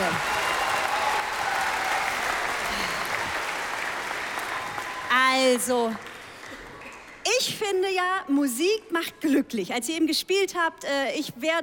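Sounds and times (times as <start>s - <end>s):
audience applause: 0.0s - 7.2s
speech: 5.6s - 6.1s, 7.4s - 11.6s.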